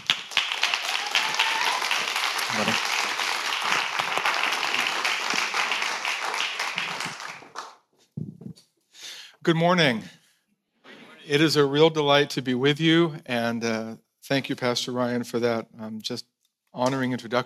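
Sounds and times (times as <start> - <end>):
audience applause at a church gathering welcoming a speaker: 0.0 - 7.8
speech: 2.5 - 2.8, 9.5 - 10.2, 11.3 - 17.4.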